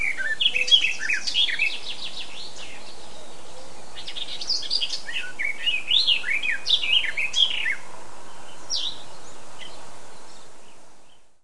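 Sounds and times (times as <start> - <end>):
Eurasian blackcap song: 0.0 - 7.8.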